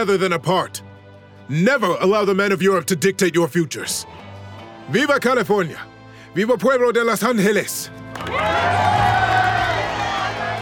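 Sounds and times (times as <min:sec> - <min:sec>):
speech: 0:00.0 - 0:00.9, 0:01.5 - 0:04.3, 0:04.9 - 0:09.1
crowd of men shouting in praise: 0:08.4 - 0:10.5.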